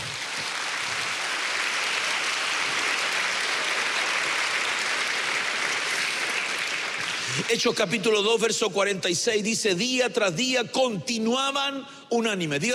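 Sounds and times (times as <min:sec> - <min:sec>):
audience applause: 0:00.0 - 0:07.7
speech: 0:07.4 - 0:12.7.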